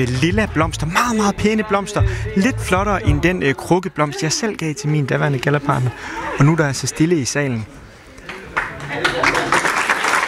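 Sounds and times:
speech: 0:00.0 - 0:07.8
audience clapping in a hall at a gala: 0:08.2 - 0:10.2.

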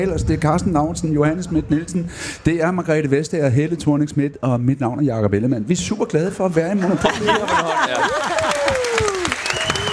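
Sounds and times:
speech: 0:00.0 - 0:08.3
laughter: 0:06.6 - 0:09.4
audience applause: 0:07.2 - 0:09.9.

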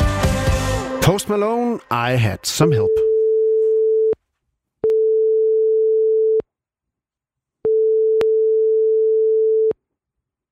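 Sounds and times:
speech: 0:01.1 - 0:03.1
phone line ringing tone of an unanswered call: 0:02.6 - 0:04.2, 0:04.9 - 0:06.4, 0:07.7 - 0:09.7.

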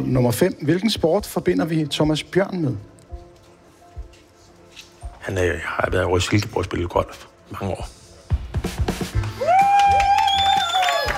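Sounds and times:
speech: 0:00.0 - 0:02.9, 0:05.3 - 0:08.0
audience applause: 0:09.2 - 0:11.1
whistles and cheers: 0:09.4 - 0:11.1.

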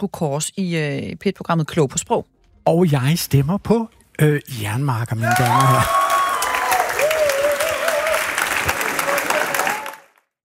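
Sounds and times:
speech: 0:00.0 - 0:06.0
audience cheering and applauding: 0:05.2 - 0:10.3.

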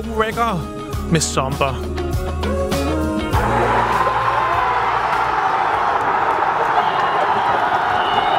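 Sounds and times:
speech: 0:00.2 - 0:02.6
huge crowd cheering: 0:03.3 - 0:08.3.

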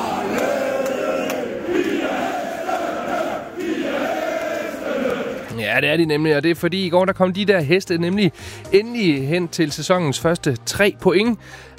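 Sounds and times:
large crowd of football fans singing loudly together: 0:00.0 - 0:05.5
speech: 0:05.6 - 0:11.7.

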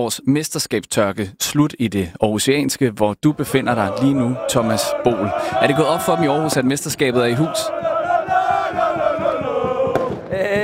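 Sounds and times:
speech: 0:00.0 - 0:08.0
celebrating crowd chanting and singing at championship street party: 0:03.4 - 0:10.6
rhythmic thumps like clapping or stamping: 0:03.9 - 0:10.6.

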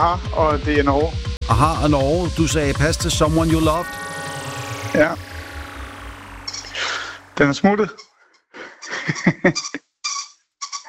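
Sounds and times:
speech: 0:00.0 - 0:04.0, 0:04.9 - 0:05.3, 0:07.4 - 0:08.0, 0:09.1 - 0:09.8
laughter: 0:08.6 - 0:09.8
rubber squeaky toy squeaking: 0:09.6 - 0:10.8.

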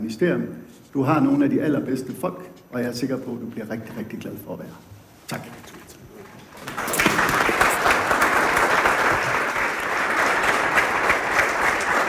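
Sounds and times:
speech: 0:00.1 - 0:05.6
audience applause after a speech: 0:06.6 - 0:12.0.

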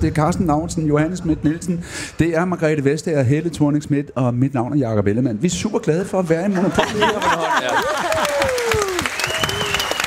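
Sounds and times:
speech: 0:00.0 - 0:08.2
laughter: 0:06.5 - 0:09.1
audience clapping: 0:07.4 - 0:10.0.

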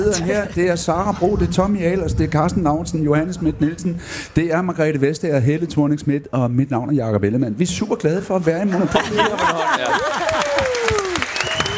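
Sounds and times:
speech: 0:00.1 - 0:10.8
laughter: 0:08.6 - 0:11.2
audience applause: 0:09.2 - 0:11.7.

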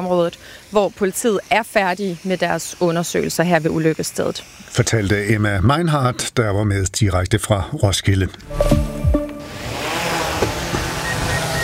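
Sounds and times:
speech: 0:00.0 - 0:08.8
agricultural drone flying: 0:08.4 - 0:11.6.

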